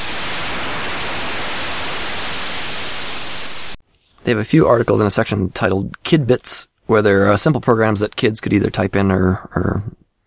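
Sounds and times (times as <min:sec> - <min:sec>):
computer-generated ocean wave effect of hissing white noise: 0:00.0 - 0:03.8
speech: 0:04.3 - 0:10.0.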